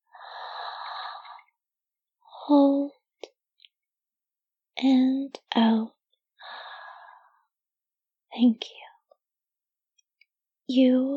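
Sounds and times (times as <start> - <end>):
deep breath drawn in during a breathing exercise: 0.1 - 1.5, 6.4 - 7.4
speech: 4.8 - 6.0, 8.4 - 8.8, 10.7 - 11.1.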